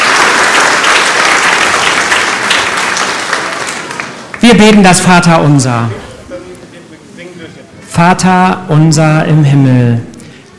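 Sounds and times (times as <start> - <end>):
audience applause: 0.0 - 4.4
speech: 4.5 - 6.1, 8.0 - 10.1.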